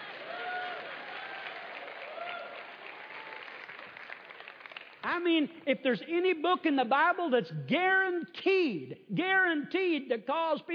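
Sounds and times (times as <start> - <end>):
faint voices and cheers: 0.0 - 3.7
audience clapping: 0.0 - 5.3
speech: 5.0 - 10.7.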